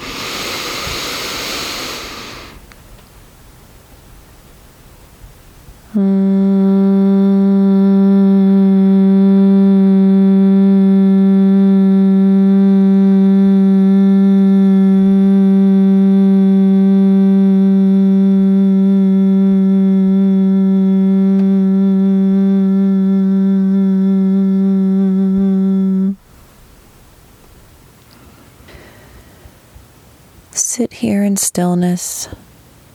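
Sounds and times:
breathy inhale: 0.0 - 2.6, 28.2 - 29.8
long low buzzing hum on an exhale: 2.2 - 32.9
speech: 6.0 - 6.2, 31.0 - 32.5.

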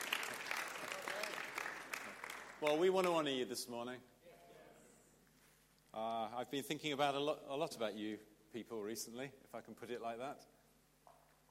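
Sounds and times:
audience clapping: 0.0 - 3.5
speech: 2.6 - 4.1, 6.0 - 10.6.

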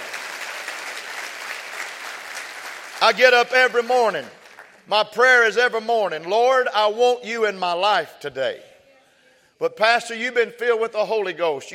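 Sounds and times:
audience clapping hands: 0.0 - 5.1
speech: 3.0 - 8.7, 9.6 - 11.7.

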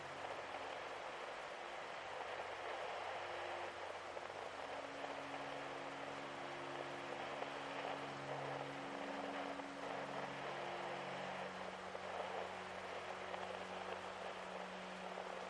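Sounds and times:
steady dense rain hiss: 0.0 - 15.4
calming ambient music low tones: 3.2 - 15.4.

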